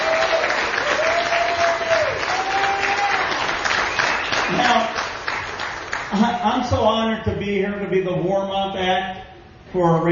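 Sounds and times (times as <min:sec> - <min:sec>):
audience applause: 0:00.0 - 0:06.6
speech: 0:06.2 - 0:10.1.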